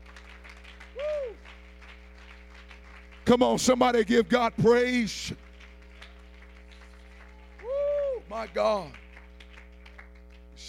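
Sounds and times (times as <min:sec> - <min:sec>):
audience clapping hands: 0:00.0 - 0:10.6
speech: 0:03.3 - 0:05.4, 0:08.4 - 0:09.0.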